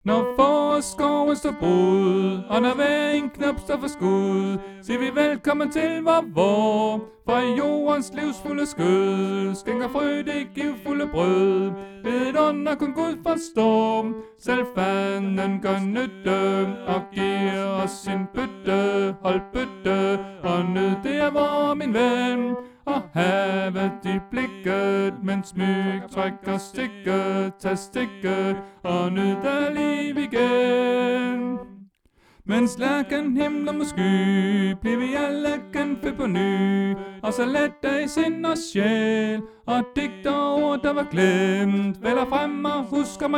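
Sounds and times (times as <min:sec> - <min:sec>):
tenor singing: 0:00.0 - 0:43.3.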